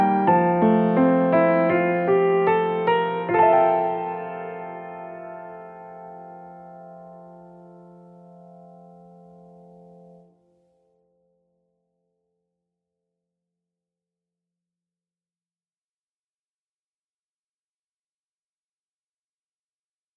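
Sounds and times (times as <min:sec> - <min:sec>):
piano: 0:00.0 - 0:11.9.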